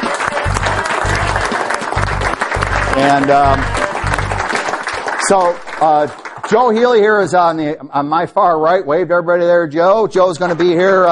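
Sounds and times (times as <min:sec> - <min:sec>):
audience applause: 0:00.0 - 0:07.2
speech: 0:03.0 - 0:03.8, 0:05.3 - 0:11.1.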